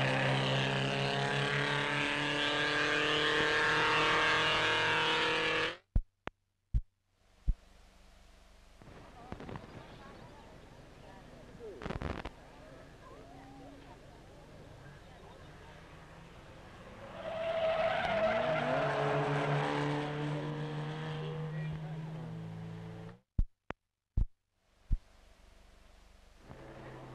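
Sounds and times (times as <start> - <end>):
1930s race car engines roaring past on rural roads: 0.0 - 5.8, 12.3 - 23.2, 26.4 - 27.1
faint spectator voices: 8.9 - 16.3.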